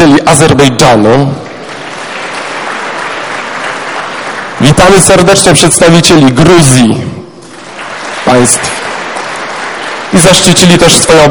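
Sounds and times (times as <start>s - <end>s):
speech: 0.0s - 1.4s, 4.6s - 7.2s, 8.3s - 8.9s, 10.2s - 11.2s
applause greeting representatives of foreign countries: 1.4s - 5.6s, 7.5s - 11.2s.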